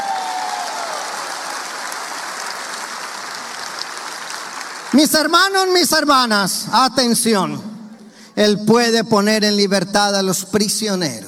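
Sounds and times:
audience applause: 0.0 - 5.6
speech: 4.9 - 7.7, 8.4 - 11.2.

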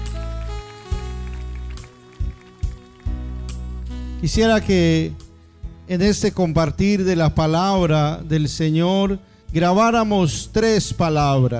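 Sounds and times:
audience applause: 0.1 - 3.6
speech: 4.2 - 5.2, 5.9 - 11.5.

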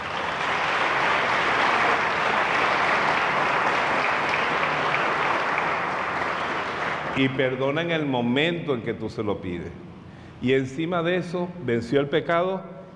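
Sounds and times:
audience applause: 0.0 - 7.4
speech: 7.2 - 9.8, 10.4 - 12.8.

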